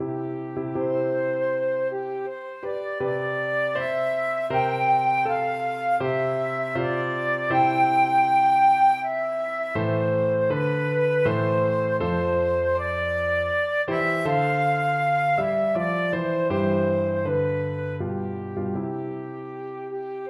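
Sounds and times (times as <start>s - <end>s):
flute: 0.0s - 20.2s.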